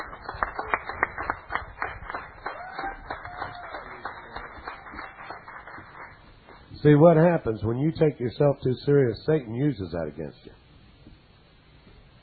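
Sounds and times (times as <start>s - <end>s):
audience clapping: 0.0s - 6.8s
cheering whoops and shouts: 2.4s - 5.1s
speech: 6.8s - 10.6s.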